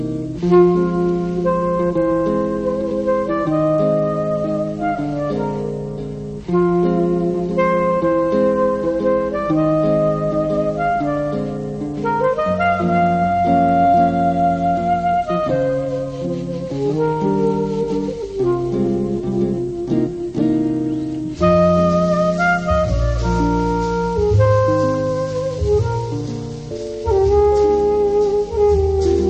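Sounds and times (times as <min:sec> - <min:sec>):
saxophone: 0:00.2 - 0:29.2.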